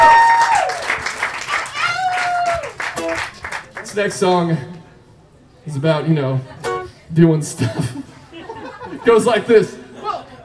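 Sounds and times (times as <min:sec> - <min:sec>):
audience applause: 0:00.0 - 0:04.5
speech: 0:04.0 - 0:04.8, 0:05.6 - 0:08.2, 0:08.9 - 0:09.8
laughter: 0:06.3 - 0:10.4.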